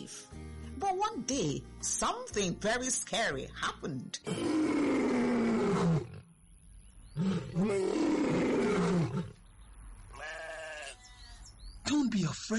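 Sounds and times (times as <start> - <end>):
speech: 0.0 - 4.8
lion roaring: 4.3 - 6.2, 7.2 - 9.4.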